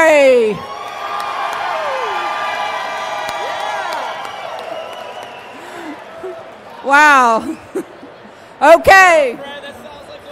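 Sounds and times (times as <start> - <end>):
crowd cheering: 0.5 - 8.4
speech: 6.9 - 7.6, 8.6 - 9.5.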